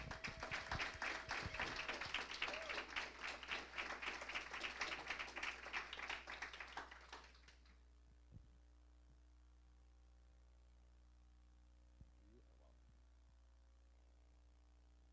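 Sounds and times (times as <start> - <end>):
crowd applauding: 0.0 - 7.7.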